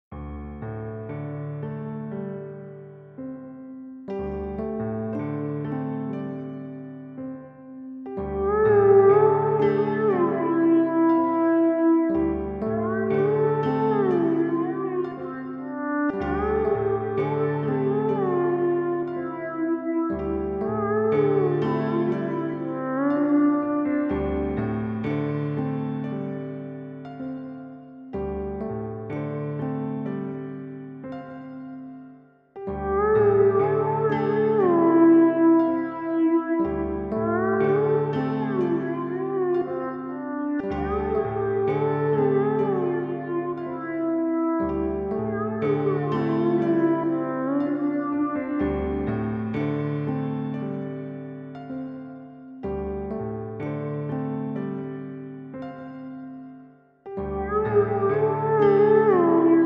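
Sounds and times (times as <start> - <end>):
piano: 0.1 - 59.6.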